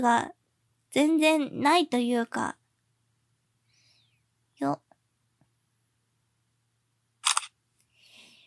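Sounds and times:
speech: 0:00.0 - 0:02.6, 0:04.6 - 0:04.8
camera shutter clicking to take a photo: 0:07.2 - 0:07.5.

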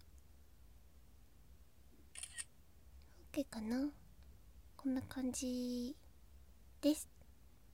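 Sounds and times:
camera shutter taking a photo in a small recording room: 0:02.2 - 0:02.5
speech: 0:03.4 - 0:04.0, 0:04.8 - 0:06.0, 0:06.8 - 0:07.1.

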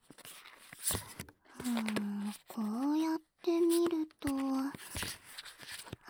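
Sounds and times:
overhand shuffle of playing cards: 0:00.9 - 0:05.1.

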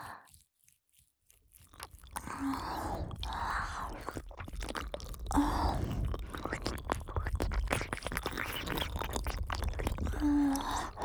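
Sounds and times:
ASMR ear licking in the left ear: 0:01.5 - 0:11.0.

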